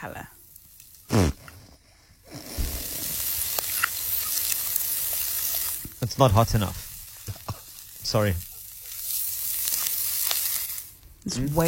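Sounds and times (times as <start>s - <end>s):
speech: 0.0s - 0.4s, 6.2s - 6.8s, 8.1s - 8.5s, 11.3s - 11.6s
steak sizzling: 0.0s - 11.6s.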